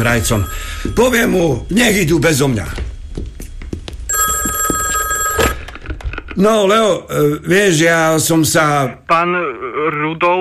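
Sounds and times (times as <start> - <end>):
telephone ringing with electronic trill: 0.0 - 1.7, 4.1 - 5.8
speech: 0.0 - 3.3, 6.4 - 10.3.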